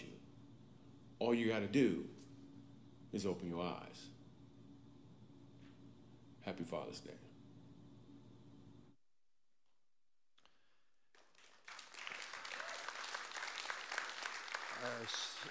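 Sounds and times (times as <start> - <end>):
speech: 1.2 - 2.3, 3.1 - 4.2, 6.4 - 7.3, 14.8 - 15.4
applause: 11.1 - 15.4.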